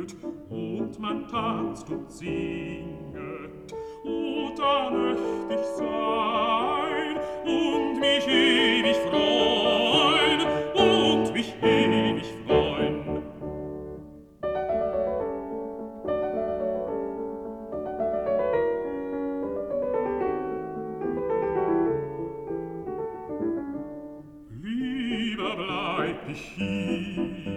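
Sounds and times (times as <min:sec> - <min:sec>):
person singing: 0:00.0 - 0:13.4, 0:24.5 - 0:27.5
piano: 0:00.0 - 0:27.5.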